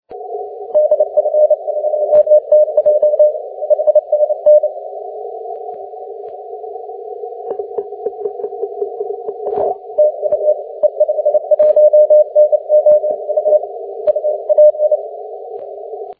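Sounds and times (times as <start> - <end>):
12m band continuous wave signal: 0.1 - 16.1.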